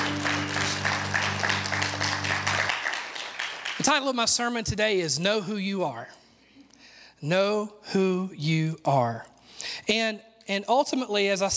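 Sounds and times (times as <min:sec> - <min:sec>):
hand clapping in praise: 0:00.0 - 0:04.0
speech: 0:03.8 - 0:06.2, 0:07.2 - 0:11.5.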